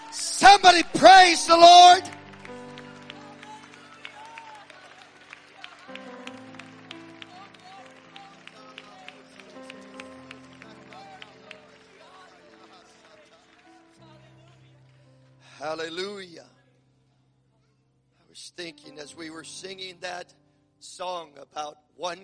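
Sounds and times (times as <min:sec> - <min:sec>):
audience clapping hands: 0:00.0 - 0:15.3
speech: 0:00.1 - 0:02.2, 0:19.5 - 0:20.4, 0:21.0 - 0:22.2.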